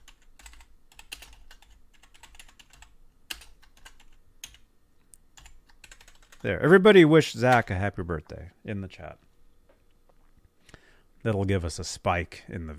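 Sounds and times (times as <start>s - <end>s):
typing on a computer keyboard: 0.0s - 4.6s, 5.4s - 6.4s
speech: 6.4s - 9.3s, 11.2s - 12.7s.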